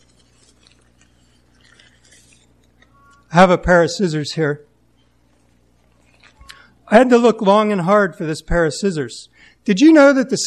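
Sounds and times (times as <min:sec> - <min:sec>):
paper bag crinkling: 0:00.0 - 0:03.3, 0:05.0 - 0:06.6
speech: 0:03.3 - 0:04.7, 0:06.9 - 0:10.4.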